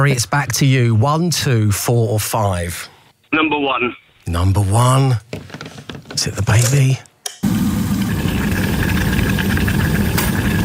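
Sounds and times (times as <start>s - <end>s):
speech: 0.0s - 7.1s
kettle boiling: 7.4s - 10.6s.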